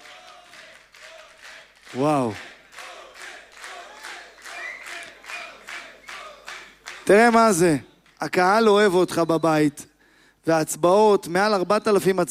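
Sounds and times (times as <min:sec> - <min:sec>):
audience applause: 0:00.0 - 0:07.6
speech: 0:01.9 - 0:02.5, 0:07.1 - 0:12.2.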